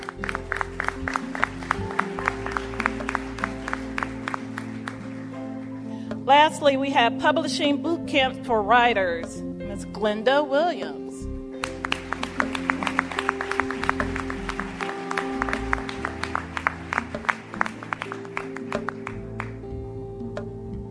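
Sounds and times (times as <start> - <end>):
audience applause: 0.0 - 5.8, 11.6 - 19.6
speech: 6.3 - 11.0.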